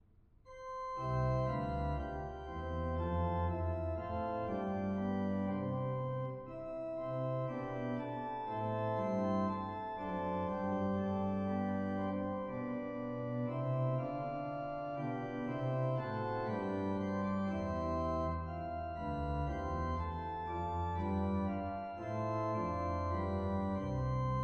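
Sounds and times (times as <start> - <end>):
musical prelude: 0.5 - 24.4.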